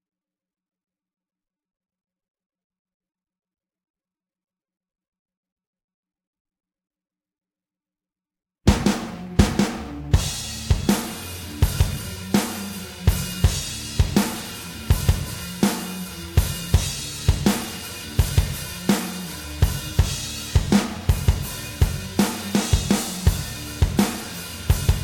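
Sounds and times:
drums: 0:08.7 - 0:25.0.

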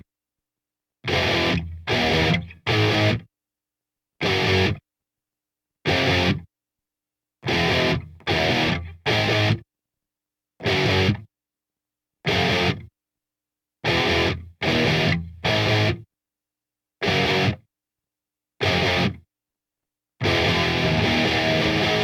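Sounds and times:
guitar: 0:01.0 - 0:03.3, 0:04.2 - 0:04.8, 0:05.8 - 0:06.5, 0:07.4 - 0:09.7, 0:10.6 - 0:11.3, 0:12.2 - 0:12.9, 0:13.8 - 0:16.1, 0:17.0 - 0:17.7, 0:18.6 - 0:19.3, 0:20.2 - 0:22.0.

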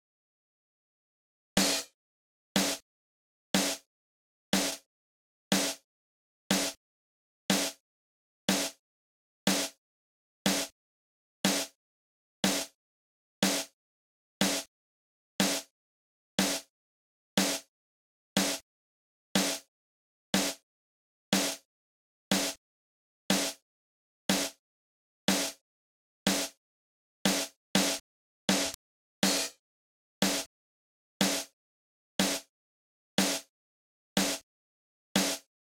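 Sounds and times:
drums: 0:01.6 - 0:02.0, 0:02.6 - 0:02.8, 0:03.6 - 0:03.9, 0:04.5 - 0:04.9, 0:05.5 - 0:05.8, 0:06.5 - 0:06.8, 0:07.5 - 0:07.8, 0:08.5 - 0:08.8, 0:09.5 - 0:09.8, 0:10.4 - 0:10.8, 0:11.4 - 0:11.8, 0:12.4 - 0:12.8, 0:13.4 - 0:13.8, 0:14.4 - 0:14.7, 0:15.4 - 0:15.7, 0:16.4 - 0:16.7, 0:17.4 - 0:17.7, 0:18.4 - 0:18.6, 0:19.4 - 0:19.7, 0:20.4 - 0:20.6, 0:21.3 - 0:21.7, 0:22.3 - 0:22.6, 0:23.3 - 0:23.6, 0:24.3 - 0:24.6, 0:25.3 - 0:25.6, 0:26.3 - 0:26.6, 0:27.2 - 0:29.6, 0:30.2 - 0:30.5, 0:31.2 - 0:31.6, 0:32.2 - 0:32.5, 0:33.2 - 0:33.5, 0:34.2 - 0:34.5, 0:35.2 - 0:35.5.

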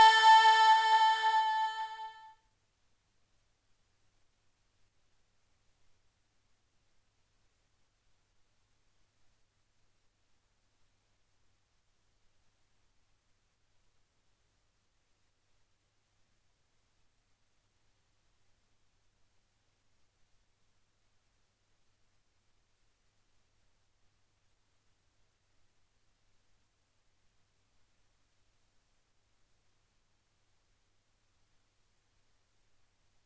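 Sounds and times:
person singing: 0:00.0 - 0:02.3.

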